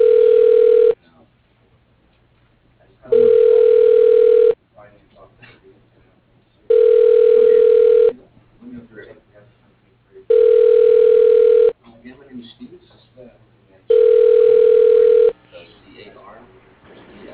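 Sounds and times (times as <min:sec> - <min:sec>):
telephone line ringing before voicemail answers: 0:00.0 - 0:01.0, 0:03.1 - 0:04.6, 0:06.7 - 0:08.1, 0:10.3 - 0:11.7, 0:13.9 - 0:15.3
faint low murmuring: 0:02.7 - 0:17.3.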